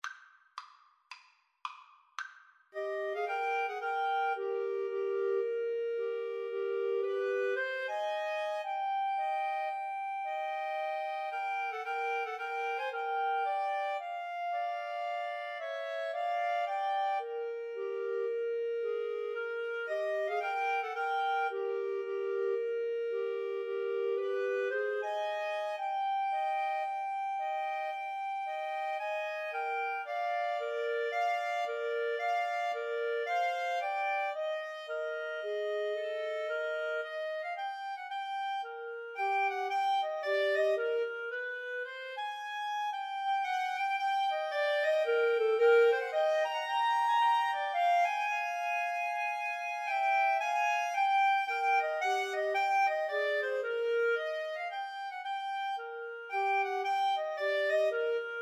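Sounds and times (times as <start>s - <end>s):
clarinet trio: 2.8s - 58.4s.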